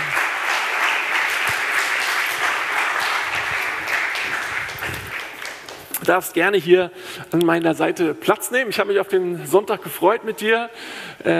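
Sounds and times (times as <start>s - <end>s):
warm audience applause: 0.0s - 6.0s
speech: 6.1s - 11.3s.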